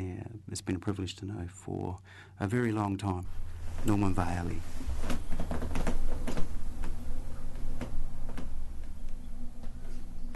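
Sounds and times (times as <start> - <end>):
speech: 0.0 - 5.6
low steady hum: 0.0 - 10.3
leather couch creaking as someone sits: 3.3 - 10.3.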